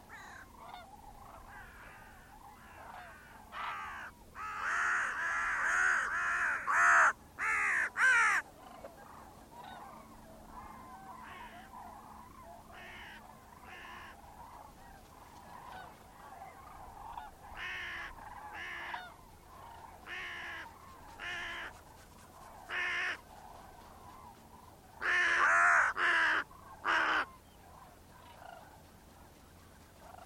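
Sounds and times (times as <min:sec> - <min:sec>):
bird cawing: 0:00.1 - 0:08.9, 0:09.6 - 0:21.8, 0:25.0 - 0:27.5.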